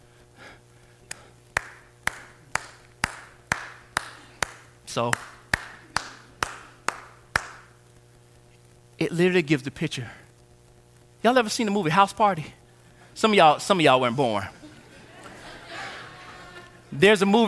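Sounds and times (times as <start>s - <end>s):
soft golf clap: 1.1s - 7.7s
speech: 5.0s - 5.4s, 9.0s - 10.2s, 11.2s - 12.6s, 13.2s - 14.6s, 17.0s - 17.4s
laughter: 14.4s - 17.0s.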